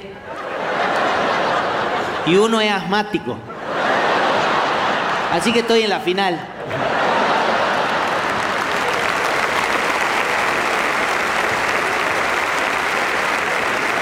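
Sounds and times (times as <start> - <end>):
laughter: 0.0 - 14.0
speech: 2.3 - 3.5, 5.3 - 6.9
audience applause: 6.7 - 14.0.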